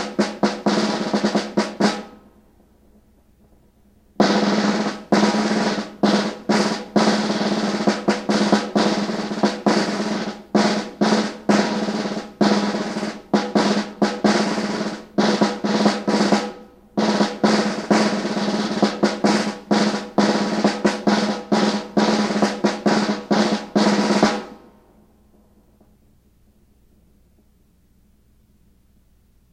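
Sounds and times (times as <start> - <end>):
snare drum: 0.0 - 2.2, 4.2 - 24.8.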